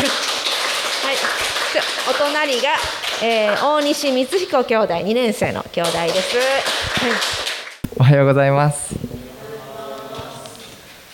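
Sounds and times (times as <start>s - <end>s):
crowd clapping: 0.0s - 4.7s, 5.8s - 7.9s
speech: 1.8s - 9.1s.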